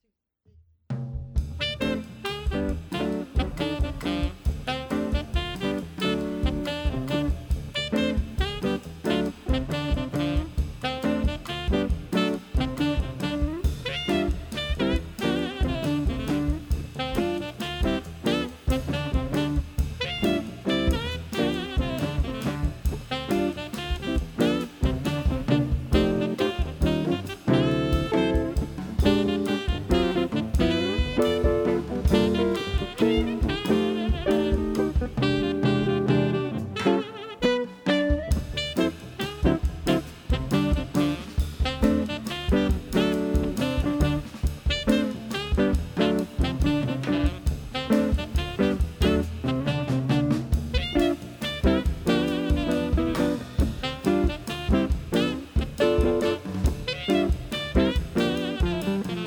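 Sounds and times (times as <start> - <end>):
blues music: 1.3 - 59.2.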